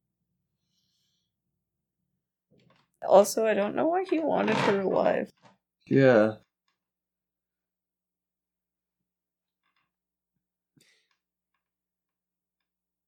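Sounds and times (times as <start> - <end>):
speech: 2.6 - 6.4
creaking of wooden coffee table or couch: 3.9 - 5.3.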